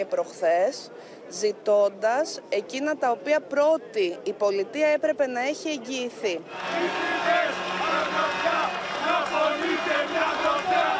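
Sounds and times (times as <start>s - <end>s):
speech: 0.0s - 8.4s
beekeeper protesters applauding: 6.5s - 10.9s.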